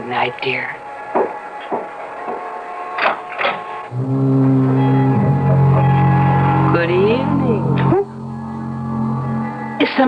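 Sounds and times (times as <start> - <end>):
speech: 0.1 - 1.8, 3.9 - 4.5
foghorn: 3.9 - 9.8.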